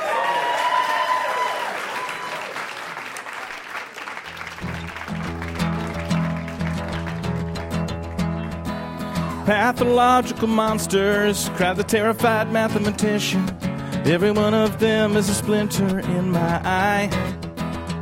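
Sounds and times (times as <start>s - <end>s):
audience applause: 0.0s - 9.0s
music: 4.3s - 18.0s
speech: 9.5s - 17.4s.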